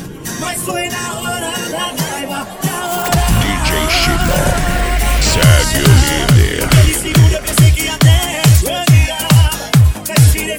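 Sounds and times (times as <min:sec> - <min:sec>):
sertanejo remix: 0:02.7 - 0:10.4.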